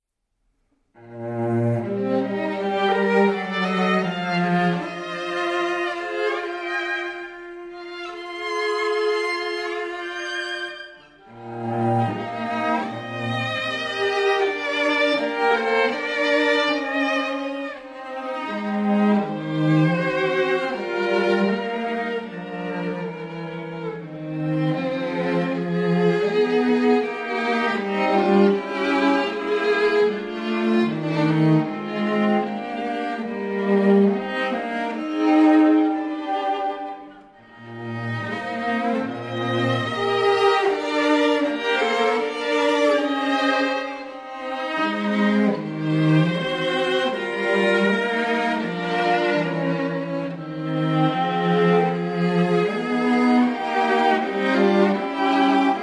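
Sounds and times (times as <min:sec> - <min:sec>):
professional string ensemble playing: 0:00.9 - 0:55.8.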